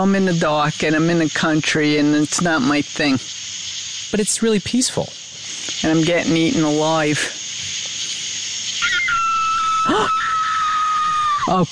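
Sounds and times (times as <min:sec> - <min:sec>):
speech: 0:00.0 - 0:03.5, 0:04.1 - 0:05.2, 0:05.8 - 0:07.4, 0:11.5 - 0:11.6
coyote or fox calling at night: 0:08.7 - 0:11.6.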